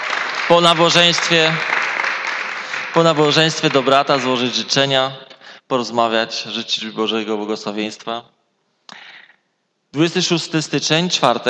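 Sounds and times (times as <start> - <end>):
audience applause: 0.0 - 4.6
speech: 0.5 - 1.7, 2.9 - 9.0, 9.9 - 11.4.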